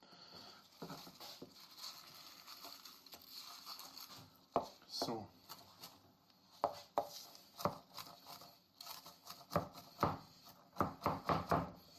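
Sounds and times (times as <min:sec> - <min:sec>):
speech: 0:05.0 - 0:05.4
dull knife chopping food on a board: 0:06.6 - 0:11.9.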